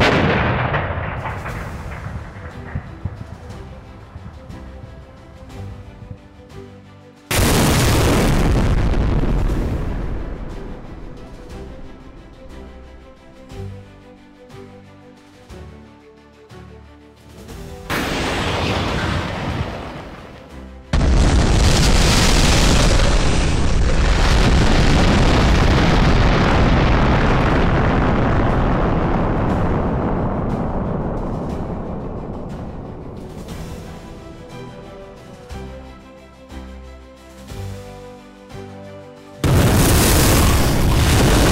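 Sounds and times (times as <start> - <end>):
missile launch: 0.0 - 4.3, 7.3 - 10.4, 17.9 - 32.7, 39.4 - 41.5.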